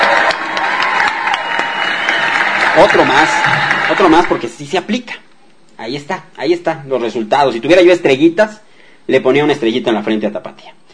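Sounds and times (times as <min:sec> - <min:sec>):
crowd applause: 0:00.0 - 0:04.6
speech: 0:02.8 - 0:10.8.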